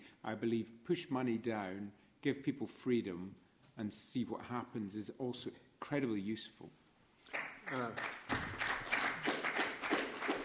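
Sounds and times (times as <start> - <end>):
speech: 0.2 - 8.2
audience applause: 7.3 - 10.4.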